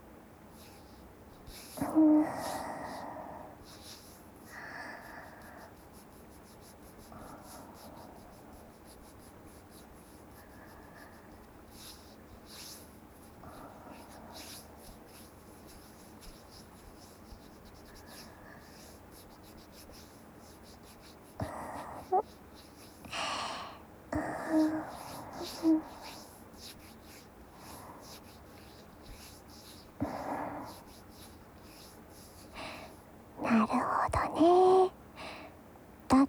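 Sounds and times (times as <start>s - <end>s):
quiet vocal murmurs: 1.5s - 35.0s
fingertips stroking a cheek, ASMR: 5.4s - 23.3s, 24.2s - 33.0s.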